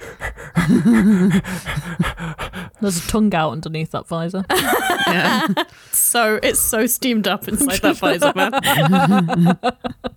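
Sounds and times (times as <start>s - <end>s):
person imitating heavy breathing: 0.0s - 2.8s
speech: 0.7s - 2.1s, 2.8s - 10.1s
laughter: 4.5s - 5.7s, 7.5s - 10.1s.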